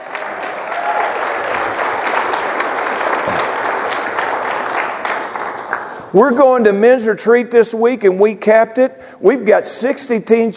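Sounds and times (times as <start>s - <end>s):
audience clapping: 0.0s - 6.1s
speech: 6.1s - 10.5s.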